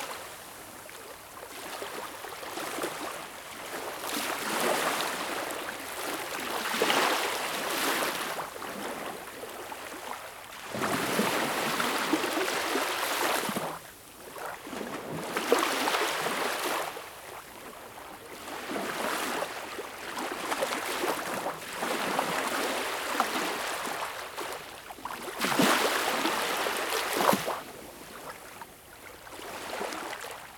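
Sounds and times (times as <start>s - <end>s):
waves at Baltic Sea shore: 0.0s - 30.5s.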